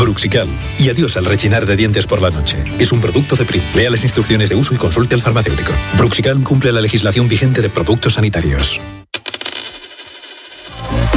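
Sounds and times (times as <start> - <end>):
speech: 0.2 - 9.0
euro coin dropping and bouncing on a hard surface: 9.1 - 10.9.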